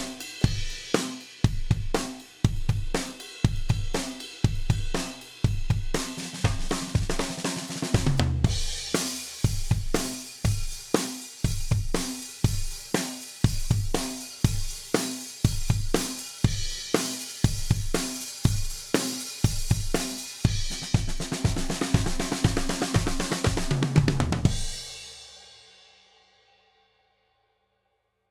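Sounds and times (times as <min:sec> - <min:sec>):
8-beat drum pattern: 0:00.0 - 0:24.8.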